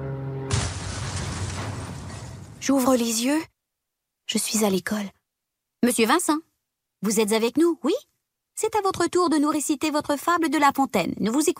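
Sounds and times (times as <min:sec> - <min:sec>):
aircraft crashing with loud smash: 0:00.0 - 0:02.7
speech: 0:02.6 - 0:03.5, 0:04.3 - 0:05.2, 0:05.8 - 0:11.5.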